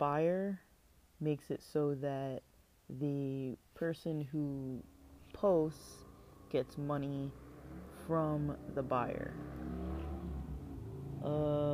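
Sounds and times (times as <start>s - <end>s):
speech: 0.0s - 0.6s, 1.2s - 9.6s, 11.2s - 11.7s
motorcycles driving past loudly: 4.8s - 11.7s.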